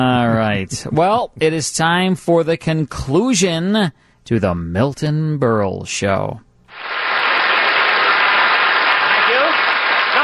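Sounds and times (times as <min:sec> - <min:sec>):
speech: 0:00.0 - 0:07.0
studio audience applause: 0:06.7 - 0:10.2.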